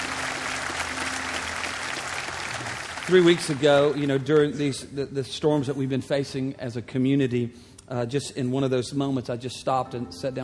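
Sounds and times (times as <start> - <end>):
large group clapping in a reverberant room: 0.0 - 4.5
speech: 3.1 - 10.4.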